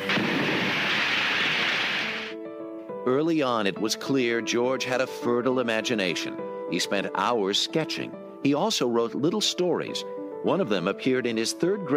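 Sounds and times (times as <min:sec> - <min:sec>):
ray gun firing in a 1930s Flash Gordon movie serial: 0:00.0 - 0:02.3
speech: 0:03.1 - 0:11.9.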